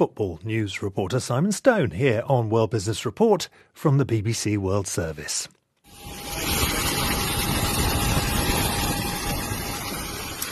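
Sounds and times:
speech: 0.0 - 6.6
heavy winds at Dubai Airport: 6.0 - 10.5
torrential rain at Dubai Airport: 6.1 - 10.5.

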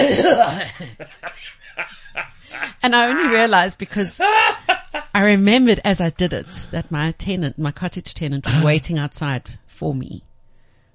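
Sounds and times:
exaggerated imitation of an old man's cough: 0.0 - 2.8
person laughing: 0.0 - 3.5, 4.1 - 5.1
speech: 0.1 - 1.2, 2.8 - 4.6, 5.2 - 10.3.

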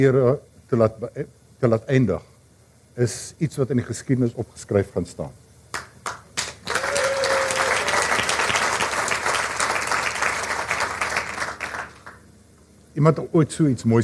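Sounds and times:
speech: 0.0 - 2.3, 3.0 - 5.4, 13.0 - 14.0
audience applause: 6.1 - 12.2.

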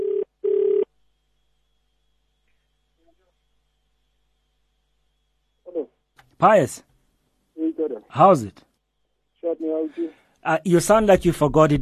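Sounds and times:
unanswered telephone ringing: 0.0 - 0.9
speech: 6.4 - 6.9, 8.1 - 8.7, 9.6 - 11.8.

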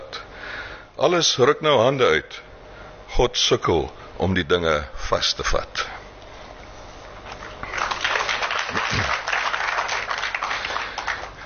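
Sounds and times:
speech: 1.0 - 2.5, 3.2 - 5.9
audience clapping: 7.3 - 11.4.

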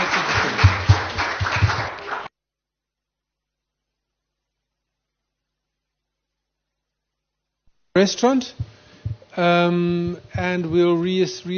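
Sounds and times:
audience round of applause: 0.0 - 2.3
speech: 8.0 - 8.8, 9.4 - 11.5.

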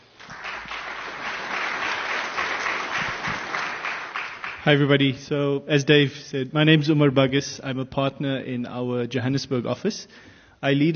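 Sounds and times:
audience applause welcoming speakers onto stage: 0.0 - 4.9
speech: 4.6 - 10.9.

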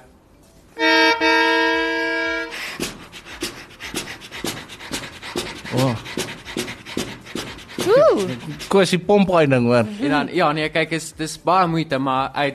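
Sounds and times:
concertina imitating a steam train: 0.8 - 8.8
speech: 8.2 - 12.5.

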